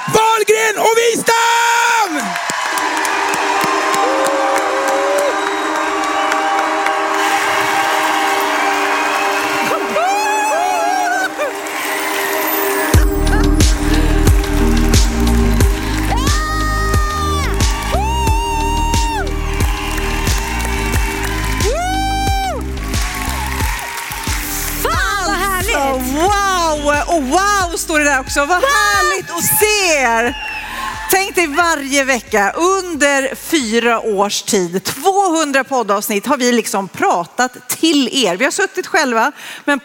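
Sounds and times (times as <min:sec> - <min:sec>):
crowd applause and cheering: 0:00.0 - 0:32.9
speech: 0:00.5 - 0:01.4, 0:28.1 - 0:30.5, 0:31.1 - 0:39.8
whoops and shouts: 0:03.4 - 0:13.7, 0:15.5 - 0:25.9, 0:28.6 - 0:31.5
music with pounding bass beat: 0:13.0 - 0:30.4.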